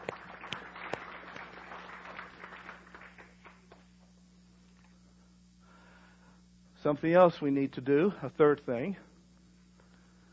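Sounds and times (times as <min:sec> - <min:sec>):
audience applause: 0:00.0 - 0:03.8
speech: 0:06.8 - 0:09.1.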